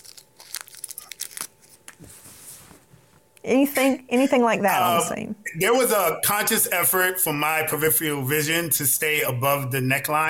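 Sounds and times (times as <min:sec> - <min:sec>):
wrapping crinkling and tearing as a wrapped object is unwrapped: 0:00.0 - 0:02.1
speech: 0:03.4 - 0:10.2.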